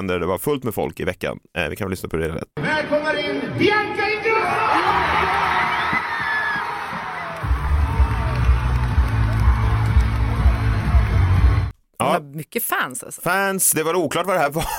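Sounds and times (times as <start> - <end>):
speech: 0.0 - 5.2, 12.0 - 14.7
crowd cheering at an arena: 4.2 - 11.7
laughter: 14.6 - 14.7.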